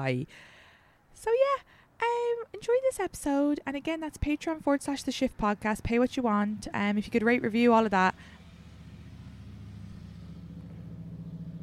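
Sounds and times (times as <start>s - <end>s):
speech: 0.0s - 0.6s, 1.2s - 8.4s
motorcycle passing by: 6.5s - 11.6s.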